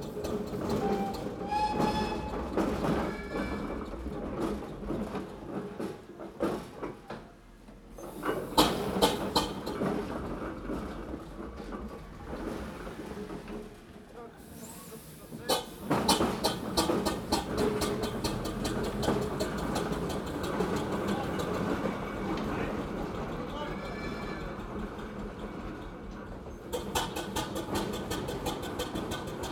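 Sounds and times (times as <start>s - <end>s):
steamrollers: 0.0s - 29.5s.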